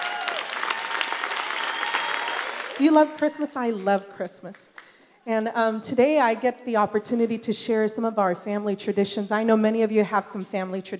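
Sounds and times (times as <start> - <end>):
audience clapping hands: 0.0 - 3.0
speech: 2.8 - 10.9.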